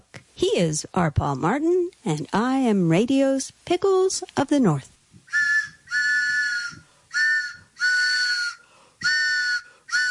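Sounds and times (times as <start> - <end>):
speech: 0.4 - 5.0
train whistle blasts: 5.3 - 10.1.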